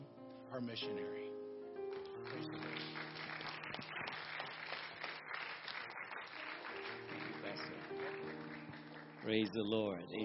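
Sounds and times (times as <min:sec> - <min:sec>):
speech: 0:00.5 - 0:01.4, 0:02.2 - 0:04.8, 0:09.2 - 0:10.2
audience applauding: 0:01.9 - 0:09.8.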